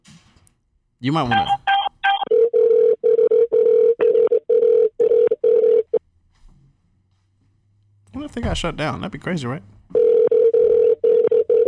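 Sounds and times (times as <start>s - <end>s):
speech: 1.0s - 1.6s, 8.4s - 9.8s
telephone dialling tones: 1.3s - 6.0s, 10.0s - 11.6s.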